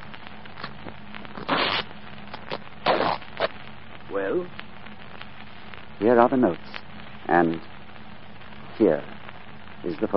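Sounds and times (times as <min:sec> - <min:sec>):
jacket breast pocket lining being cut open: 0:01.4 - 0:03.5
speech: 0:04.2 - 0:04.6, 0:06.0 - 0:07.7, 0:08.8 - 0:09.2, 0:09.8 - 0:10.1.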